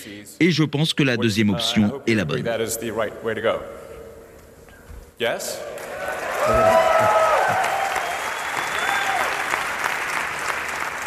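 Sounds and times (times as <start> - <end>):
speech: 0.0 - 3.8, 5.2 - 5.8, 6.4 - 7.2
conference audience applauding: 5.7 - 11.0.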